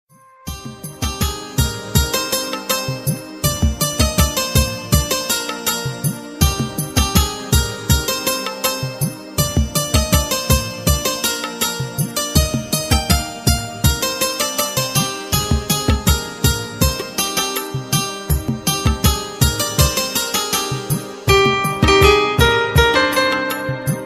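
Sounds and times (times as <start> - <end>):
surround music: 0.1 - 24.0.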